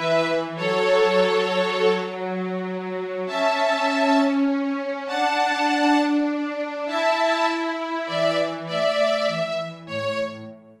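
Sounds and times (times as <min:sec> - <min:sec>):
viola playing a minuet: 0:00.0 - 0:10.7.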